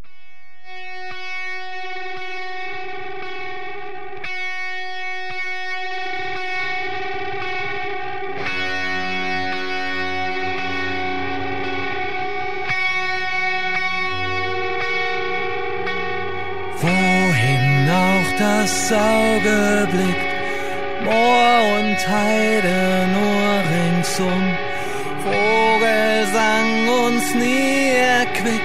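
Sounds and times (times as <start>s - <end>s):
held chords: 0.6s - 28.6s
prisoners singing: 16.8s - 28.6s
speech: 21.1s - 24.5s.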